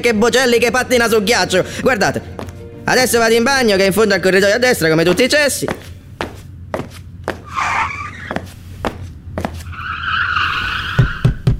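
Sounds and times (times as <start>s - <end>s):
speech: 0.0s - 6.0s
racing car engine rumble: 5.7s - 9.8s
Grand Prix racing car tires screeching: 7.3s - 11.5s.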